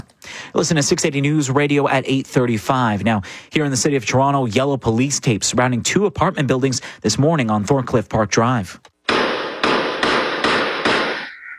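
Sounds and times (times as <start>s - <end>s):
speech: 0.5s - 8.9s
gunshots from surveillance footage: 9.1s - 11.4s.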